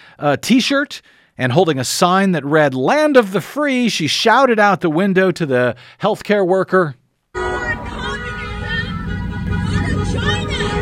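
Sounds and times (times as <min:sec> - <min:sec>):
speech: 0:00.2 - 0:07.0
car horns honking at street protest: 0:07.4 - 0:10.8.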